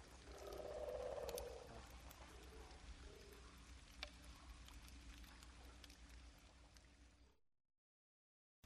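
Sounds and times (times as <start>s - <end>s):
swamp rainforest birds: 0.0s - 4.7s
swamp rainforest mammals: 0.3s - 1.8s.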